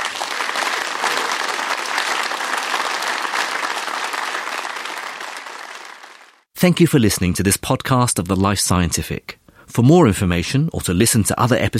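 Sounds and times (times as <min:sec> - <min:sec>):
audience applause at Sage Gateshead's Free Thinking Festival: 0:00.0 - 0:06.5
speech: 0:06.6 - 0:11.7.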